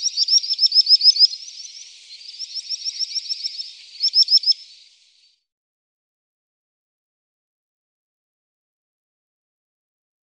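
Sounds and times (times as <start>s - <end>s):
common sandpiper piping calls: 0.0s - 4.9s.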